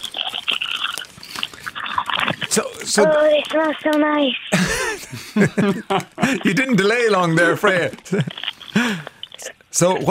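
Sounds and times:
crunching curry flavoured crisps from a bag: 0.0s - 3.5s, 8.0s - 9.5s
speech: 2.6s - 9.1s, 9.8s - 10.0s
laughter: 4.6s - 6.9s.

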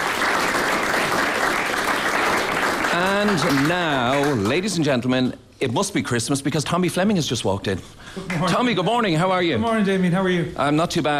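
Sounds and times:
audience applause: 0.0s - 4.9s
speech: 3.2s - 11.1s.

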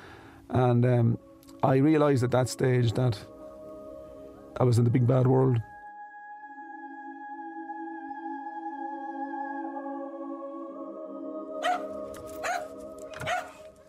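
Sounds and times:
speech: 0.5s - 3.3s, 4.6s - 5.7s
dog barking at the bedroom door: 11.6s - 13.6s.

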